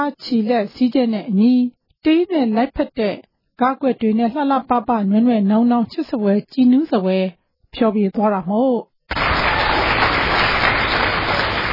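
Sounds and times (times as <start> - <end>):
speech: 0.0 - 9.2
audience applause at a traditional dance performance: 9.1 - 11.7.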